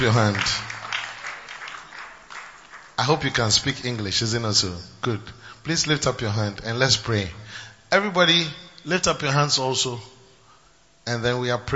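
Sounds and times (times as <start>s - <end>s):
speech: 0.0s - 0.6s, 3.0s - 10.1s, 11.0s - 11.7s
audience clapping: 0.0s - 4.3s.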